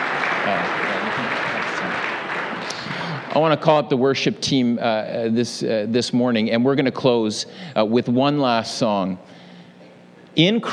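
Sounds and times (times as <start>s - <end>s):
audience applause: 0.0s - 3.6s
speech: 3.4s - 9.4s, 10.4s - 10.7s.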